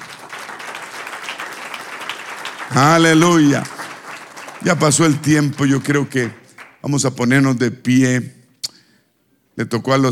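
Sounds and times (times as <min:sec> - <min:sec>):
audience applauding: 0:00.0 - 0:06.8
speech: 0:02.7 - 0:03.7, 0:04.6 - 0:08.4, 0:09.6 - 0:10.0.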